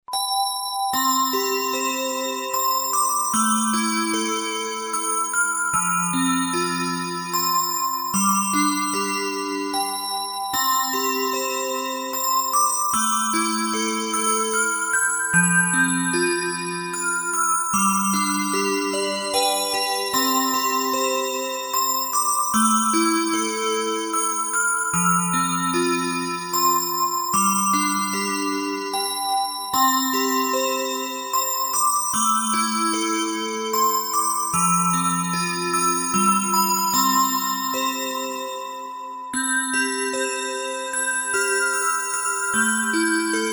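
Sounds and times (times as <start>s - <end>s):
music box: 0.1s - 43.5s.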